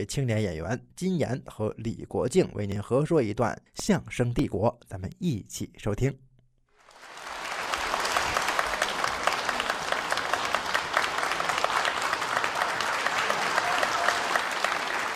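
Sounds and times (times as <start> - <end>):
speech: 0.0 - 6.2
audience applause: 6.8 - 15.1.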